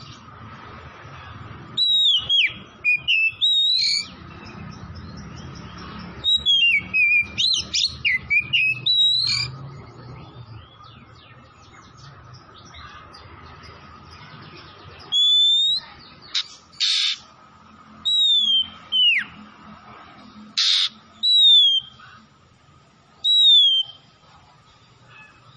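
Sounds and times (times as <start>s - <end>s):
Oriental magpie-robin whistling: 1.7s - 4.2s, 6.2s - 9.6s, 15.0s - 17.3s, 18.0s - 19.4s, 20.6s - 22.2s, 23.2s - 24.2s.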